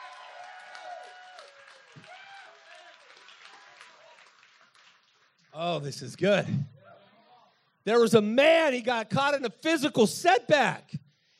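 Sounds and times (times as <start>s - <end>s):
audience clapping: 0.0s - 6.0s
speech: 5.6s - 6.8s, 7.9s - 11.0s.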